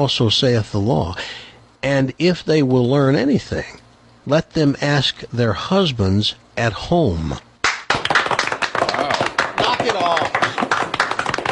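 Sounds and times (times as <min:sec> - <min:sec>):
speech: 0:00.0 - 0:07.5
crowd applause: 0:07.6 - 0:11.5.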